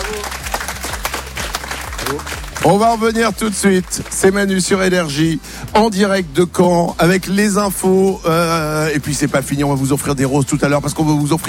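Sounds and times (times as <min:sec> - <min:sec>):
audience applauding a dance crew at a live radio event in Caen: 0:00.0 - 0:05.4
speech: 0:02.1 - 0:11.4.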